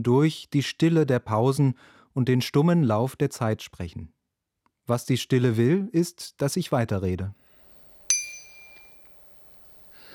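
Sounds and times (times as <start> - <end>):
speech: 0.0 - 4.2, 4.9 - 7.4
BBB 120 bicycle bell ding: 8.1 - 9.2.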